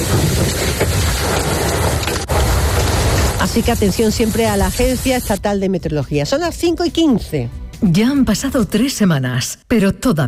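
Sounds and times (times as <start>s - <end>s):
heavy downpour with hail in Macael: 0.0s - 5.4s
speech: 3.6s - 10.2s.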